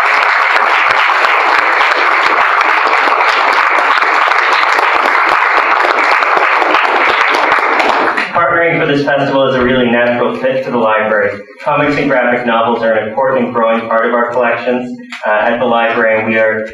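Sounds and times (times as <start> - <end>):
audience applause: 0.0 - 8.4
speech: 8.9 - 16.7.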